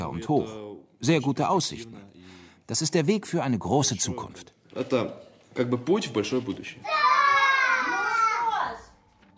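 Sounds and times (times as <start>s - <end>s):
speech: 0.2s - 7.1s
children's voices and cheerful shouting: 6.8s - 8.8s.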